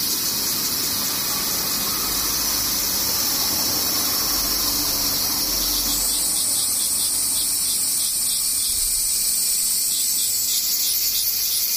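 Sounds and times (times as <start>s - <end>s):
thin high whine: 0.0s - 9.2s
cicadas droning: 0.0s - 11.7s.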